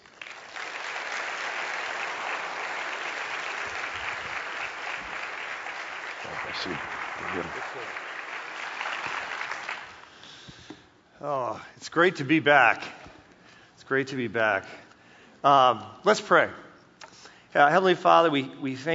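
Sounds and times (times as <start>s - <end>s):
church congregation applause welcoming a guest at a Sunday service: 0.0s - 10.4s
speech: 6.4s - 8.0s, 11.2s - 13.0s, 13.9s - 14.8s, 15.4s - 16.6s, 17.5s - 18.9s.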